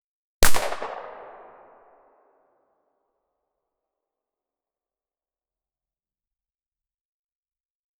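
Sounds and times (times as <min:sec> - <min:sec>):
artillery fire: 0:00.4 - 0:01.9.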